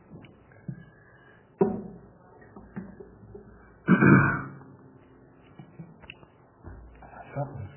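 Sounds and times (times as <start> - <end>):
man coughing and clearing throat from smoke inhalation: 3.9 - 4.5.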